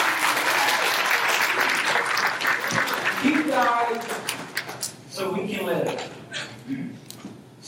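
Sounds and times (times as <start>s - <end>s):
audience applause: 0.0s - 4.9s
speech: 5.3s - 6.9s.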